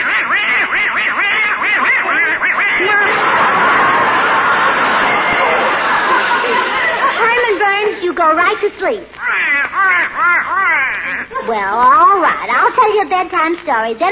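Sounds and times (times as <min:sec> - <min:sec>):
duck quacking: 0:00.0 - 0:03.2, 0:09.2 - 0:11.4
laughter: 0:00.0 - 0:08.6, 0:09.2 - 0:12.1
speech: 0:08.6 - 0:10.4, 0:11.1 - 0:14.1.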